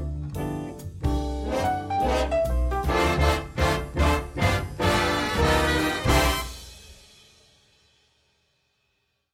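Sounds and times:
jazz karaoke duet: 0:01.1 - 0:06.4.

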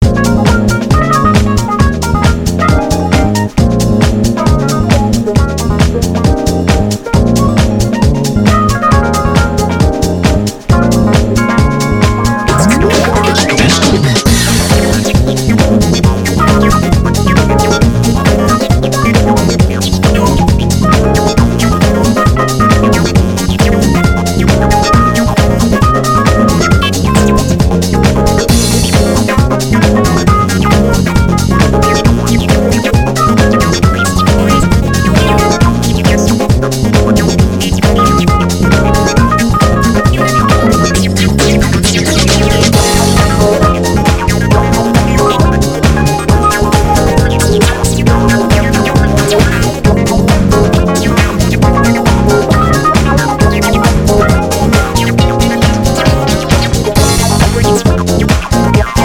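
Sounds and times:
rough instrumental music: 0:00.0 - 0:59.0.

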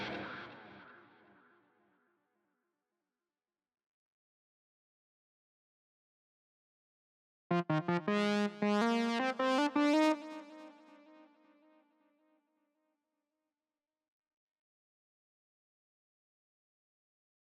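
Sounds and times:
synth leads: 0:07.5 - 0:10.8.

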